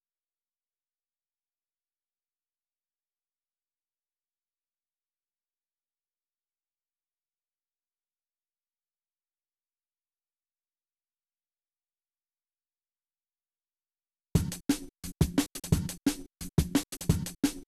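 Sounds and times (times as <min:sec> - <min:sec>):
old-school breakbeat drums: 0:14.4 - 0:17.6.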